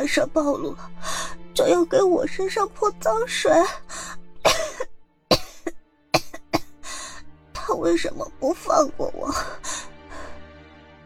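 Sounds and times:
speech: 0.0 - 4.2, 7.7 - 9.7
woman coughing while crying: 4.5 - 6.8.

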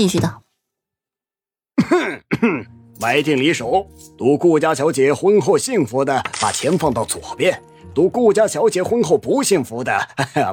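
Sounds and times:
speech: 0.0 - 0.4, 1.8 - 10.5
loud cough: 1.8 - 2.7
throat clearing: 1.8 - 2.7.

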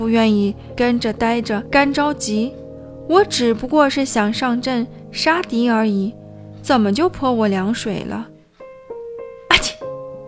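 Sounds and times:
speech: 0.0 - 8.3
sneeze: 9.5 - 9.9.

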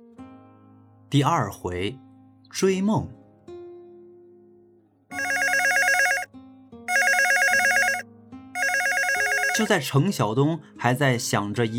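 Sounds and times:
speech: 1.1 - 3.2, 9.6 - 11.7
telephone bell ringing: 5.1 - 6.3, 6.9 - 8.0, 8.6 - 9.8.

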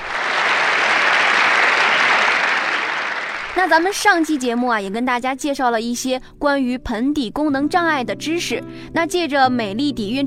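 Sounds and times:
applause: 0.0 - 4.8
speech: 3.6 - 10.2.

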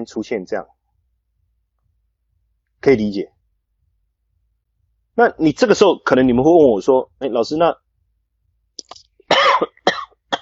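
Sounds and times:
speech: 0.0 - 0.8, 2.8 - 3.4, 5.2 - 7.8
person coughing: 9.3 - 10.3.

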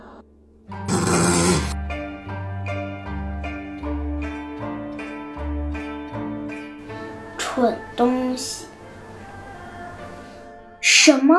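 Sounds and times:
rhythmic tonal music: 0.0 - 11.3
old dog snorting: 0.9 - 1.8
speech: 7.6 - 8.7, 11.1 - 11.3.

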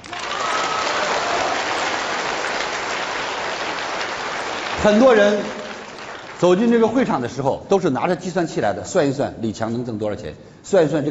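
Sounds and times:
audience applause: 0.0 - 6.9
speech: 4.8 - 5.6, 6.4 - 11.0.

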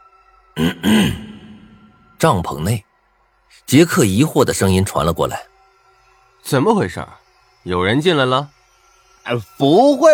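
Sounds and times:
heavy cough: 0.6 - 2.1
speech: 2.2 - 2.9, 3.5 - 5.5, 6.4 - 8.6, 9.2 - 10.1.

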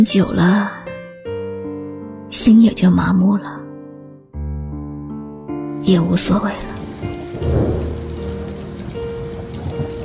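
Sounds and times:
speech: 0.0 - 0.8, 2.3 - 3.6, 5.8 - 6.7
rain falling: 5.6 - 10.0.

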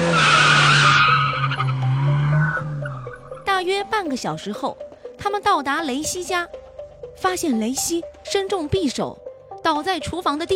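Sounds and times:
car engine: 0.0 - 3.5
car tire squeal as a car speeds off: 0.0 - 3.5
speech: 3.8 - 6.6, 7.2 - 10.5.

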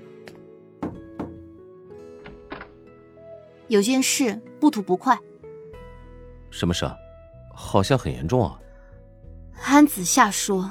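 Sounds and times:
knocking on a door: 0.8 - 1.6
speech: 3.7 - 5.3, 6.5 - 7.0, 7.6 - 8.6, 9.6 - 10.7.

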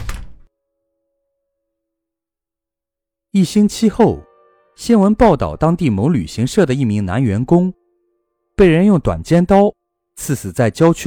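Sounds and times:
door slamming shut: 0.0 - 0.5
speech: 3.4 - 7.8, 8.6 - 11.0.

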